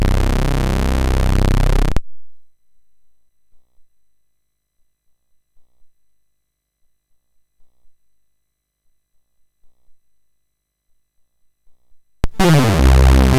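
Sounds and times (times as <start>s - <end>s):
funk rock chiptune on a MOS6581R2 chip: 0.0s - 2.0s, 12.2s - 13.3s.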